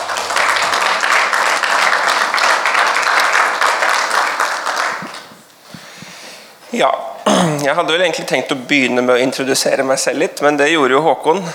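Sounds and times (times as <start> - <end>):
crowd clapping: 0.0 - 5.5
speech: 6.7 - 11.5.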